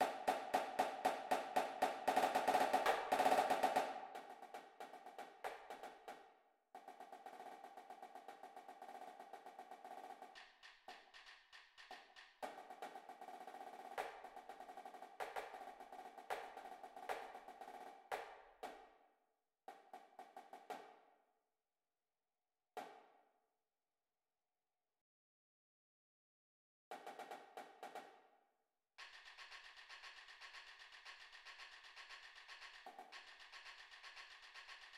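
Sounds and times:
snare drum: 0.0 - 18.9, 19.7 - 21.0, 26.9 - 28.2, 29.0 - 34.9.

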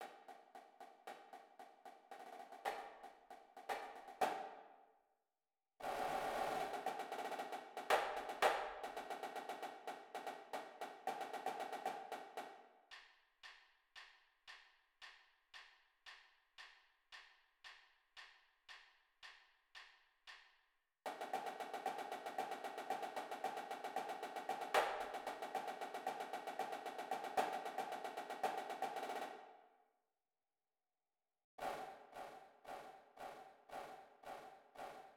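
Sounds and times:
snare drum: 0.0 - 4.6, 5.8 - 12.6, 21.1 - 29.5, 31.6 - 35.1.

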